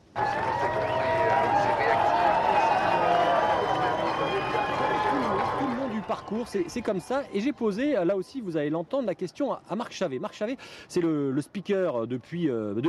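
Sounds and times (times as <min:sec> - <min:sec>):
large crowd hubbub at Tour de France stage start: 0:00.0 - 0:07.8
speech: 0:06.3 - 0:12.8.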